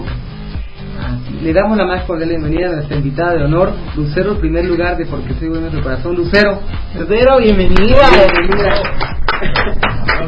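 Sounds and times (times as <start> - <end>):
speech: 1.4 - 9.8
studio audience applause: 7.8 - 10.2.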